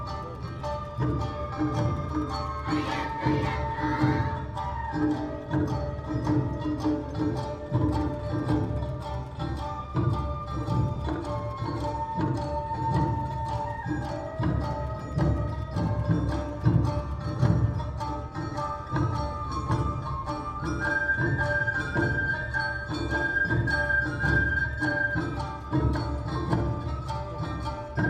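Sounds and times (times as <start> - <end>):
Awa Odori festival music: 0.0 - 28.0
flute-like melody: 0.0 - 28.0.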